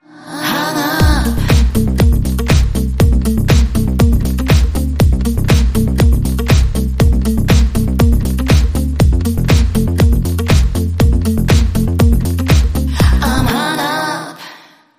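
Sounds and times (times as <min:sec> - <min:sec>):
guitar: 0:00.7 - 0:14.3.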